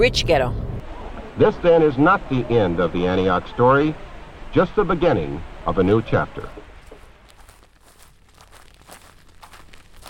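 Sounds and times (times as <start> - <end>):
speech: 0.0 - 0.6, 1.4 - 6.7
footsteps crunching on dry grass: 6.8 - 10.0.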